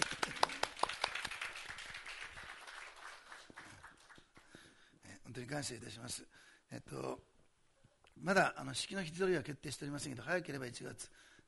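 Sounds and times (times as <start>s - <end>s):
audience clapping: 0.0s - 4.7s
speech: 5.4s - 7.3s, 8.2s - 11.3s.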